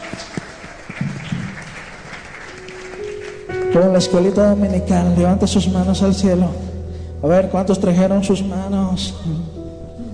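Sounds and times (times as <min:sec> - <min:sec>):
audience applause: 0:00.0 - 0:03.8
speech: 0:03.7 - 0:09.5.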